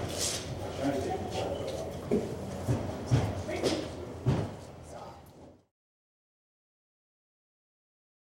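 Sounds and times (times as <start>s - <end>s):
office ambience: 0.0s - 5.7s.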